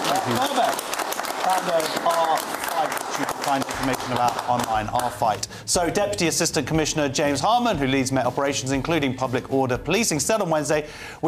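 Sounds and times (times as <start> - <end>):
audience applause: 0.0 - 5.3
speech: 0.3 - 11.2.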